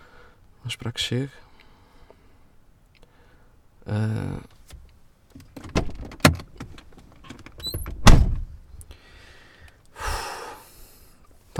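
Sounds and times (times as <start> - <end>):
speech: 0.7 - 1.5, 3.9 - 4.5
car door sounds as someone gets out of a car: 5.5 - 6.8, 7.9 - 8.5.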